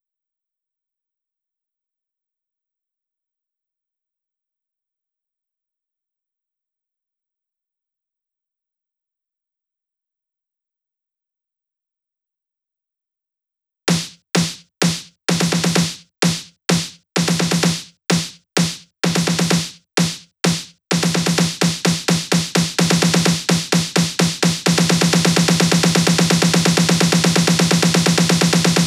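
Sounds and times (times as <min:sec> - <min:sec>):
128 BPM drum loop: 0:13.9 - 0:28.8
filtered snare uplifter: 0:13.9 - 0:28.8.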